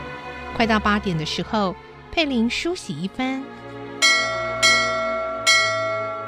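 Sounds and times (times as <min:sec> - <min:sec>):
speech: 0:00.6 - 0:03.6
bell ringing: 0:04.0 - 0:06.2.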